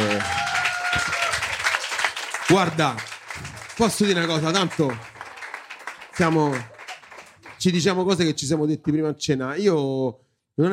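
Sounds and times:
audience applause: 0.0s - 8.0s
speech: 2.5s - 3.1s, 3.8s - 5.1s, 6.2s - 6.7s, 7.6s - 10.7s.

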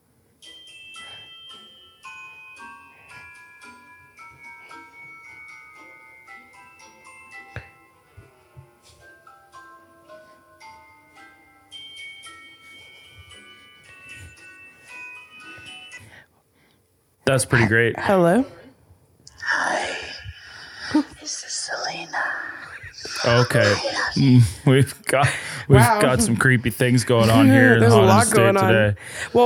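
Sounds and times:
mobile phone ringtone: 0.4s - 16.2s
speech: 17.3s - 18.6s, 23.3s - 29.4s.

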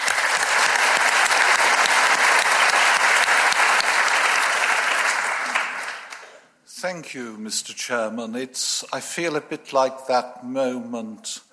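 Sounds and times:
audience applause at a debate welcoming a speaker: 0.0s - 6.4s
speech: 6.9s - 11.5s.

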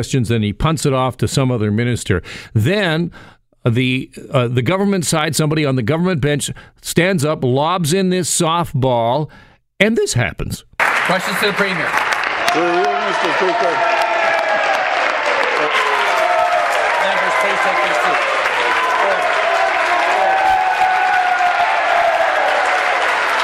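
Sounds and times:
speech: 0.0s - 13.9s
legislature applause and cheering: 10.8s - 23.4s.

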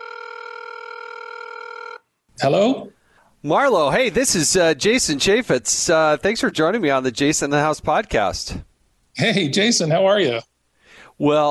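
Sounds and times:
telephone ringing tone as a call is dialed: 0.0s - 2.1s
speech: 2.4s - 10.5s, 11.2s - 11.4s.

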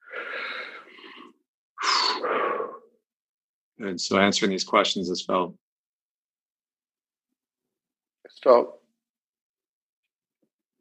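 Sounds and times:
deep breath: 0.0s - 3.0s
speech: 3.8s - 5.6s, 8.4s - 8.8s.

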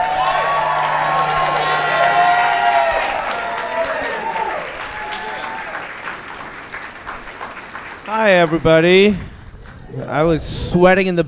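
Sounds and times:
crowd whooping and shouting: 0.0s - 7.6s
crowd clapping: 0.0s - 9.9s
speech: 8.3s - 9.3s, 9.9s - 11.2s.

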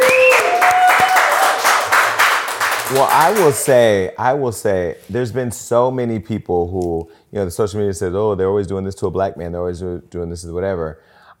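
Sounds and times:
audience applause: 0.0s - 3.8s
speech: 2.9s - 11.1s.

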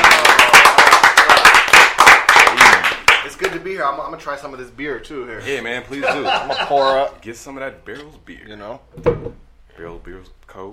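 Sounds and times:
clapping: 0.0s - 3.6s
speech: 3.9s - 10.7s
laughter: 5.9s - 7.2s.

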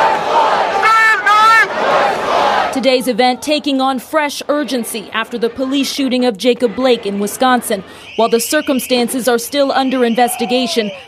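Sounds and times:
crowd chanting a name: 0.0s - 5.9s
speech: 2.8s - 11.0s.

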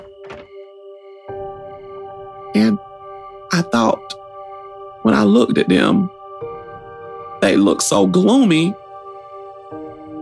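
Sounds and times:
heavy police knock on door: 0.0s - 0.5s
speech: 2.6s - 2.9s, 3.6s - 4.2s, 5.2s - 6.2s, 7.4s - 8.8s.

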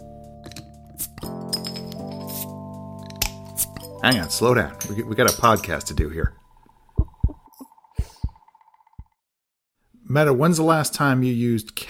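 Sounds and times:
glass clinking as a beer is handled: 1.4s - 2.3s, 3.1s - 6.2s
speech: 4.0s - 6.4s, 10.1s - 11.8s.

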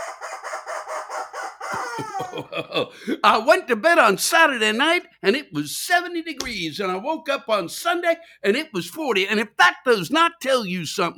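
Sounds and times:
rubber chicken toy squeaking: 0.0s - 2.2s
laughter: 1.7s - 3.5s
speech: 2.0s - 11.1s.

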